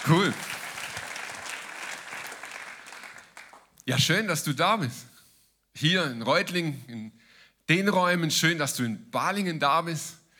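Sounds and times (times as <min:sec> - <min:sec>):
audience clapping: 0:00.0 - 0:03.8
speech: 0:00.1 - 0:00.5, 0:03.9 - 0:05.1, 0:05.8 - 0:10.2.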